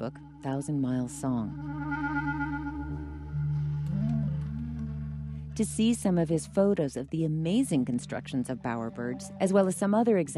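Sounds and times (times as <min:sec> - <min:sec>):
speech: 0:00.0 - 0:02.1, 0:05.6 - 0:10.3
whale songs: 0:00.0 - 0:05.6
live music: 0:00.0 - 0:05.9.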